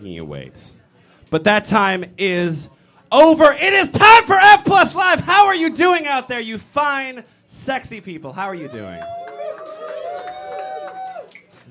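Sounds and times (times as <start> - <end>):
speech: 0.0 - 9.2
live audience applause: 8.7 - 11.6.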